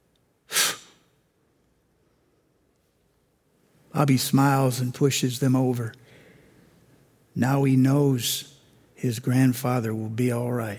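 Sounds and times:
boy's fake sneeze: 0:00.5 - 0:01.1
speech: 0:04.0 - 0:06.1, 0:07.4 - 0:10.7.

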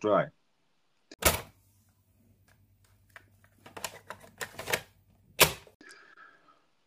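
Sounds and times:
cassette opened and closed: 0:01.2 - 0:01.6, 0:03.1 - 0:05.7.

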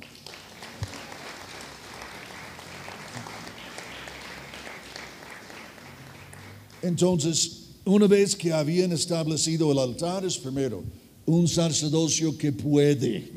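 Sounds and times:
audience applause: 0:00.0 - 0:06.9
speech: 0:06.8 - 0:13.3.

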